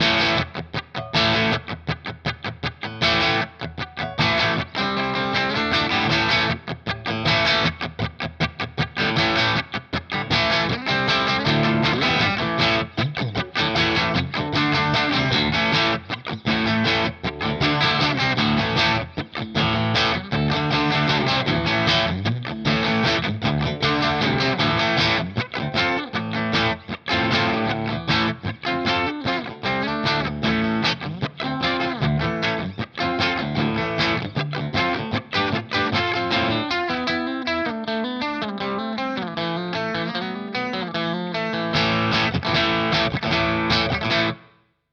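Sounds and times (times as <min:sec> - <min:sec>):
clean electric guitar with coil tap: 0:00.0 - 0:44.7.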